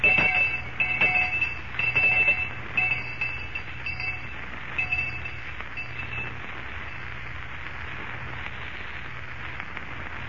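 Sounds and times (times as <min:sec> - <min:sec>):
lunch bell ringing: 0:00.0 - 0:07.1.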